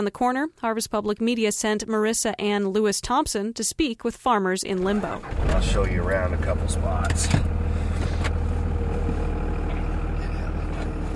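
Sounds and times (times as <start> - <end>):
speech: 0.0 - 7.5
farmer's vehicle engine rumbling on muddy gravel roads in Alexander County: 4.8 - 11.1.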